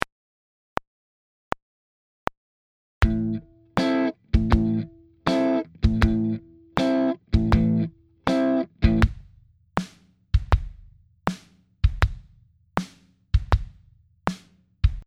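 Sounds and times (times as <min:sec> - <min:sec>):
kick and snare drum groove: 0:03.0 - 0:15.0.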